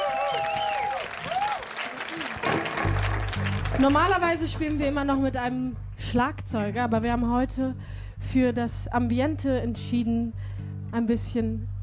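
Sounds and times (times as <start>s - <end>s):
audience applause: 0.0s - 4.2s
speech: 3.8s - 11.7s.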